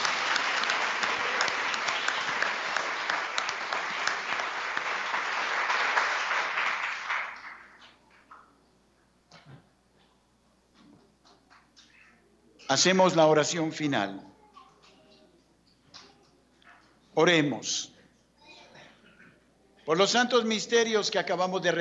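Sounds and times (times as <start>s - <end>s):
crowd applause: 0.0s - 8.0s
speech: 12.7s - 14.3s, 17.2s - 17.9s, 19.9s - 21.8s.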